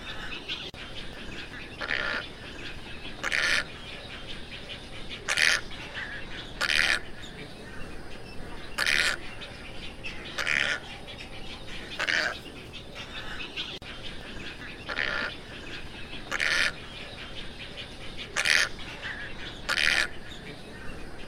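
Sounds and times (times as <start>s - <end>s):
tricolored heron squawks: 1.4s - 4.2s, 5.1s - 7.6s, 8.7s - 11.0s, 11.7s - 12.4s, 13.0s - 17.4s, 18.2s - 20.8s.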